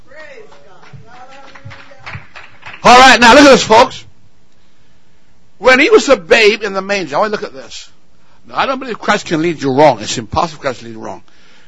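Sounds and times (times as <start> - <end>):
audience clapping: 0.0 - 3.5
speech: 2.9 - 4.0, 5.6 - 11.4.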